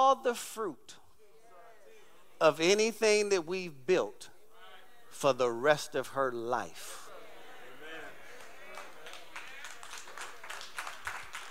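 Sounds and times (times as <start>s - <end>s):
speech: 0.1s - 1.0s, 2.4s - 4.3s, 5.1s - 7.0s
women clapping: 8.3s - 11.4s.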